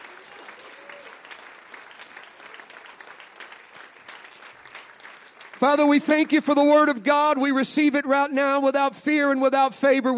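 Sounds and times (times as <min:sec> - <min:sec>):
audience clapping: 0:00.0 - 0:07.4
speech: 0:05.6 - 0:10.1.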